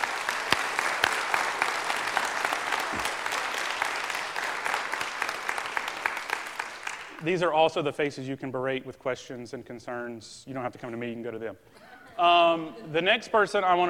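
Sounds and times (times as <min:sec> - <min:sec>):
audience applause: 0:00.0 - 0:07.2
speech: 0:07.2 - 0:13.8.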